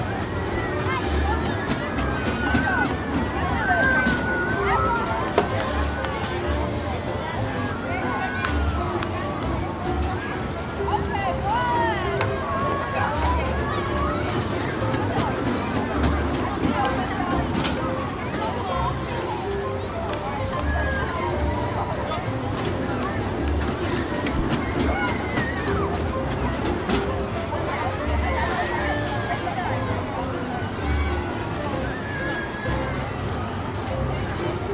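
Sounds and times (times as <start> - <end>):
carnival sounds: 0.0 - 34.7.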